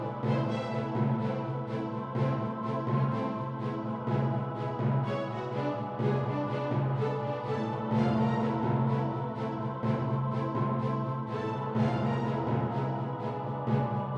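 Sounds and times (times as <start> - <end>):
dramatic adventure music for a fight situation: 0.0 - 14.1.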